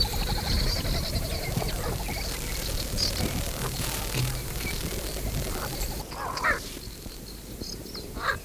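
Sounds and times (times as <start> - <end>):
African spoonbill calling: 0.0 - 6.7.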